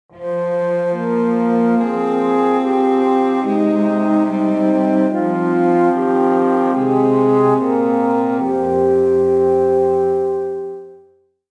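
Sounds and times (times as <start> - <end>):
calm medieval music: 0.1 - 11.1.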